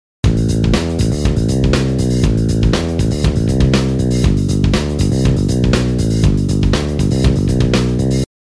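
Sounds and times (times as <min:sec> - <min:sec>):
bass: 0:00.2 - 0:08.3.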